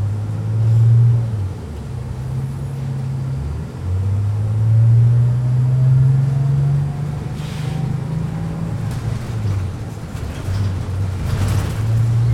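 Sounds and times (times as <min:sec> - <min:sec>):
bus interior ambience: 0:00.0 - 0:12.3.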